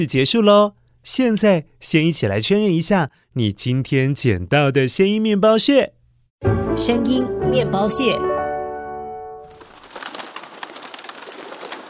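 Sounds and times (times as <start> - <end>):
speech: 0.0 - 8.4
pigeon wings flapping as it takes off: 9.5 - 11.8.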